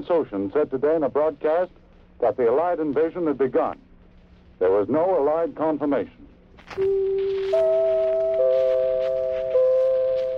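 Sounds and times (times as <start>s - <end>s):
speech: 0.0s - 3.9s, 4.6s - 8.7s
faint hiss: 0.0s - 10.3s
four-note network chime: 6.9s - 10.3s.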